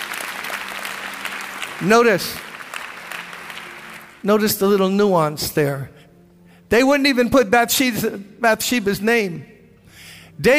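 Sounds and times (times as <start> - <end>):
church congregation clapping: 0.0 - 5.0
speech: 1.8 - 2.5, 4.2 - 6.0, 6.7 - 9.5, 10.4 - 10.5.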